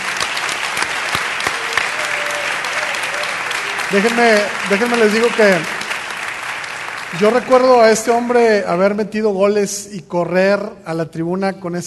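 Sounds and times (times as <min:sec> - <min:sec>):
audience applause: 0:00.0 - 0:08.5
speech: 0:03.9 - 0:05.7, 0:07.1 - 0:11.8.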